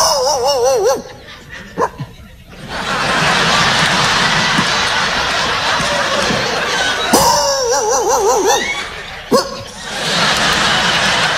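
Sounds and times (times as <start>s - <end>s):
man imitating dogs barking at night: 0.0s - 1.2s, 7.2s - 9.7s
audience laughter: 0.2s - 11.3s
audience applause: 2.6s - 11.3s.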